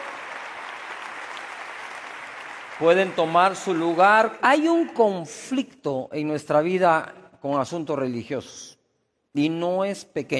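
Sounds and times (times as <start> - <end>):
audience applause: 0.0 - 4.4
speech: 2.8 - 10.3.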